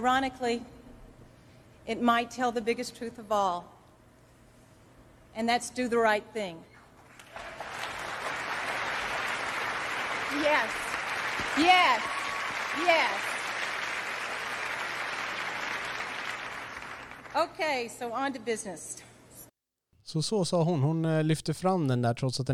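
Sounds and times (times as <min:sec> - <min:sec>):
speech: 0:00.0 - 0:00.8, 0:01.8 - 0:03.8, 0:05.4 - 0:06.7, 0:10.3 - 0:10.8, 0:11.6 - 0:12.2, 0:12.8 - 0:13.3, 0:17.4 - 0:19.1, 0:20.1 - 0:22.5
large audience applause at an awards ceremony: 0:07.2 - 0:17.3.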